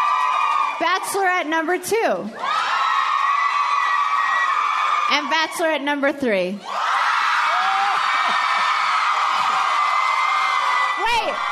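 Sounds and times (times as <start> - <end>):
audience applause for a vote: 0.0 - 0.8, 2.4 - 5.1, 6.8 - 11.5
audience cheering for a vote: 0.0 - 1.2, 2.4 - 5.6, 6.6 - 11.5
speech: 0.8 - 2.6, 5.1 - 6.8.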